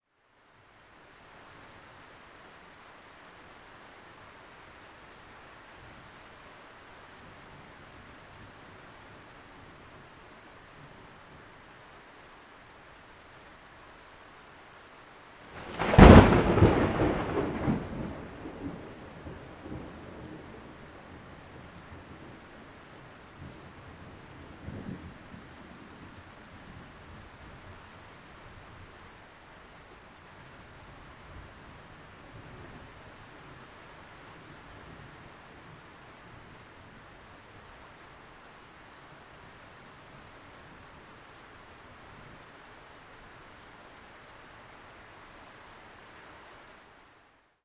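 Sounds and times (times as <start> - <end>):
light rain: 0.0 - 47.6
very close thunder strike: 15.7 - 17.9.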